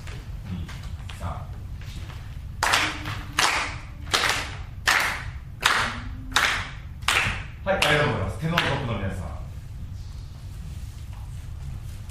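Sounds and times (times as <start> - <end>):
audience clapping along in four-beat tempo: 2.6 - 8.9
speech: 7.7 - 9.3.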